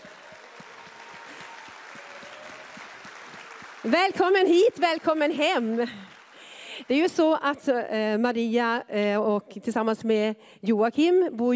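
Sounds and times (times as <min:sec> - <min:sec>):
audience applause: 0:00.0 - 0:07.3
speech: 0:03.8 - 0:06.1, 0:06.9 - 0:11.5.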